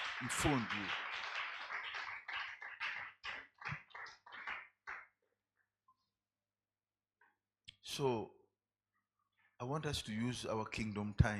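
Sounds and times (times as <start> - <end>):
audience clapping: 0.0 - 5.2
speech: 0.2 - 1.2, 8.0 - 8.4, 9.6 - 11.3.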